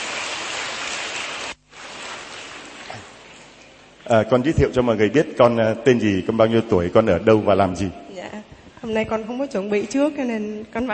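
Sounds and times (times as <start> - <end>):
audience applause: 0.0 - 3.5
speech: 4.1 - 8.0, 8.8 - 10.9.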